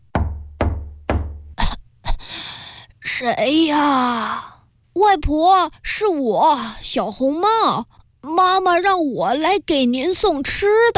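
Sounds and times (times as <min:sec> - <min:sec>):
knocking on a door: 0:00.0 - 0:01.6
speech: 0:03.2 - 0:10.9.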